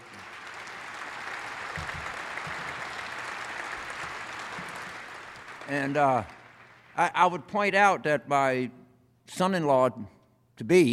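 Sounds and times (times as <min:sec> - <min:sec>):
audience round of applause: 0:00.0 - 0:07.2
speech: 0:05.7 - 0:06.4, 0:07.0 - 0:10.9.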